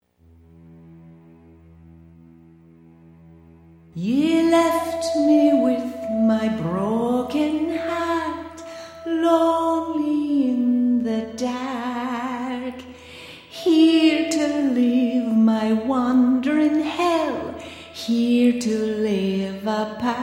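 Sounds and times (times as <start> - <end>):
person singing opening vocal: 4.0 - 20.2.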